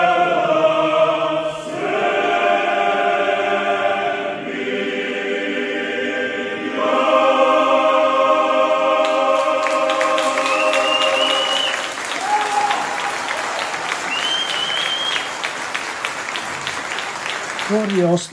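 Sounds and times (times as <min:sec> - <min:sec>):
Australian choir's final held chord: 0:00.0 - 0:15.5
standing audience applauding an Australian choir after its encore: 0:09.0 - 0:18.3
high whistles: 0:10.3 - 0:15.5.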